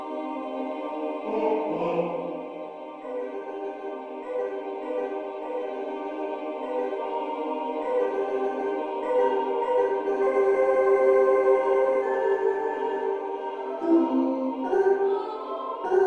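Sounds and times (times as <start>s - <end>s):
female choir singing in Hebrew: 0.0s - 16.0s.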